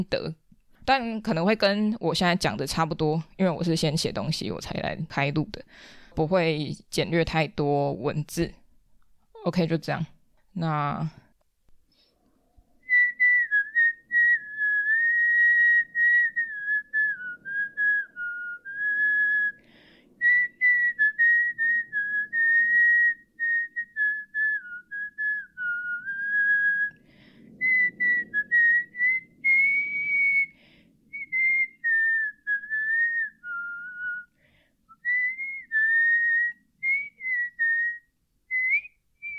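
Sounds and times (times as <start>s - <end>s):
speech: 0.0s - 8.6s, 9.4s - 11.2s
person whistling a song melody: 12.8s - 19.6s, 20.2s - 27.0s, 27.6s - 34.3s, 34.9s - 39.3s.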